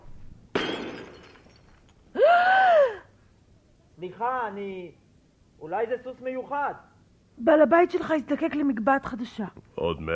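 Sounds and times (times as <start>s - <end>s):
thrown flowerpot smashing: 0.6s - 1.8s
speech: 4.1s - 5.0s, 5.6s - 10.1s.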